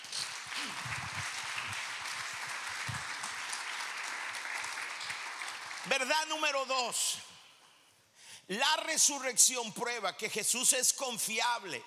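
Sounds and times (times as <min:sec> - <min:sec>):
audience applause: 0:00.0 - 0:06.3
speech: 0:05.8 - 0:07.3, 0:08.5 - 0:11.8.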